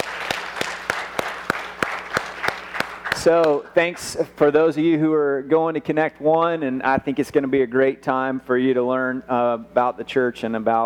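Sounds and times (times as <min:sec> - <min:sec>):
church congregation clapping to welcome guests: 0:00.0 - 0:03.8
speech: 0:03.2 - 0:10.8.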